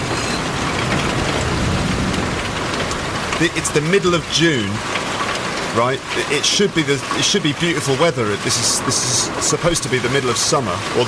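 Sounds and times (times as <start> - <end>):
heavy rain pouring down in a steady dense hiss: 0.0 - 11.0
low rumble of thunder: 0.5 - 3.4
speech: 3.4 - 4.9, 5.8 - 11.0.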